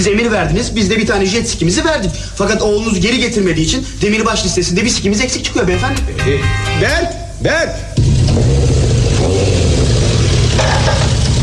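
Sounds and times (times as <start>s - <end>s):
speech: 0.0s - 8.5s
motorbike engine revving: 8.0s - 11.4s.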